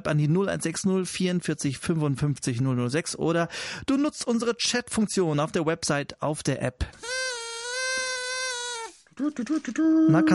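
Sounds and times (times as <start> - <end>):
speech: 0.0 - 7.4, 9.2 - 10.3
party horn toot: 7.0 - 9.0.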